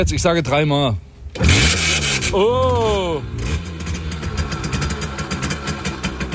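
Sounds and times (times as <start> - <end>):
speech: 0.0 - 3.4
Simson S51 moped engine kick-started and running: 1.3 - 6.3.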